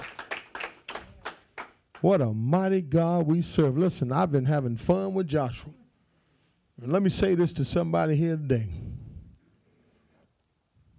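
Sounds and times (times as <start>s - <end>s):
audience clapping in rhythm: 0.0s - 2.2s
speech: 2.0s - 5.8s, 6.8s - 8.8s.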